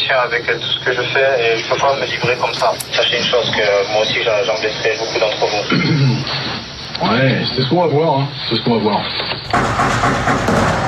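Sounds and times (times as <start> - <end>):
speech: 0.1 - 10.8
explosion during police raid: 9.5 - 10.8.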